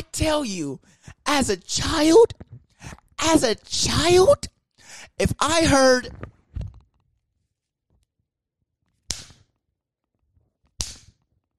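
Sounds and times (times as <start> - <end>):
speech: 0.2 - 6.3
leather belt snapped taut: 10.6 - 11.4.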